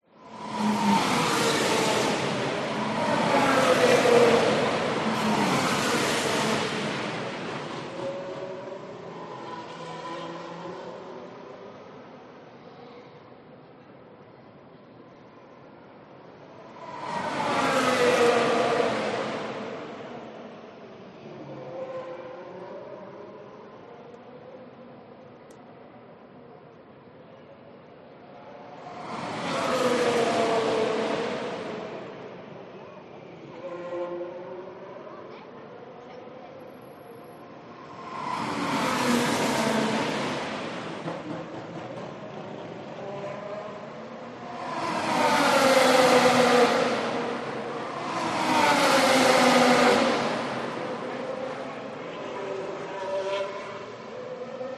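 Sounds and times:
F1 cars racing on a training track in Singapore: 0.2s - 12.9s, 16.4s - 21.9s, 28.5s - 34.0s, 37.4s - 54.7s.

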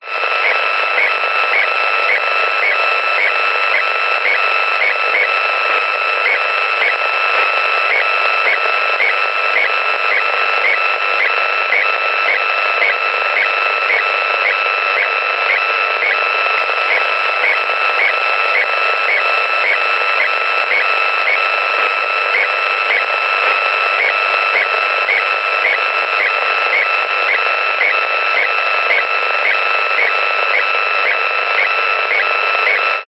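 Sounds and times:
weak radio signal clicks, buzz and static: 0.0s - 33.0s.

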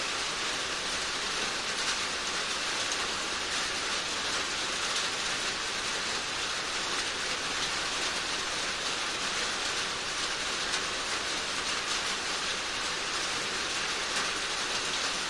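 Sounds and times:
medium rain on a metal storage container roof: 0.0s - 15.2s.

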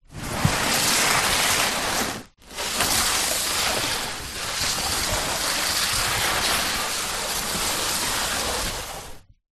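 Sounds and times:
large cardboard box sliding on garage floor: 0.0s - 9.3s.

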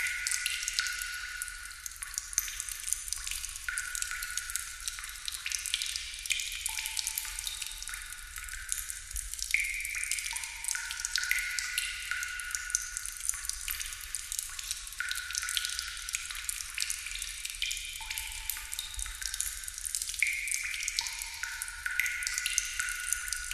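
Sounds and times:
large water drips splattering in a reverberant cave or abandoned warehouse: 0.0s - 23.5s.

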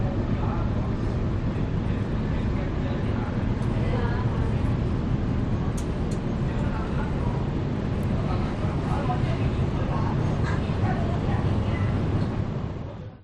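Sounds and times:
metro train interior between stations: 0.0s - 13.2s.

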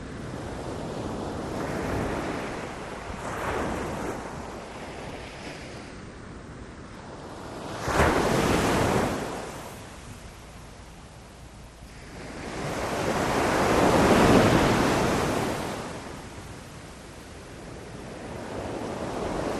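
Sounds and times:
sea waves on a beach: 0.0s - 19.5s.

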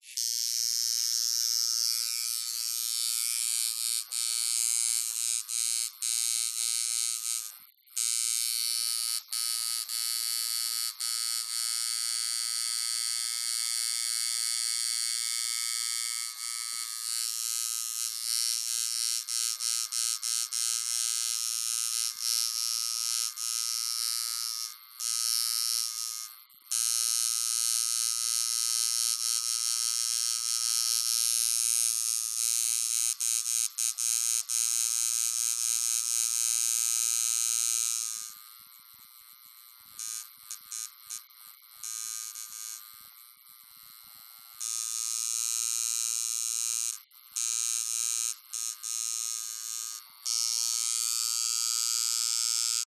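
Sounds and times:
tattoo gun operating while tattooing: 0.0s - 52.9s.

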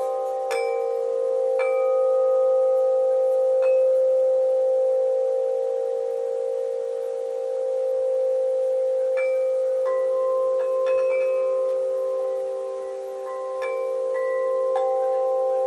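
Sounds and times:
wind chimes: 0.0s - 15.6s.

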